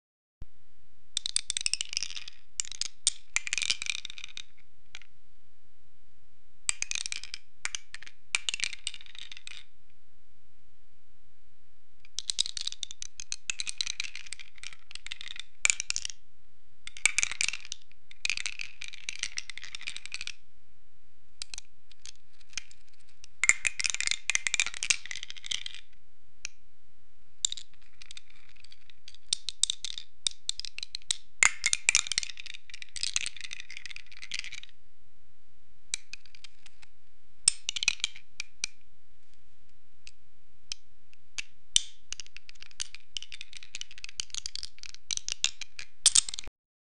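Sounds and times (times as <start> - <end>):
dice being played: 1.2 - 5.1, 6.7 - 9.7, 12.1 - 16.2, 16.9 - 20.4, 21.4 - 25.9, 27.4 - 34.7, 35.9 - 38.8, 41.4 - 46.5.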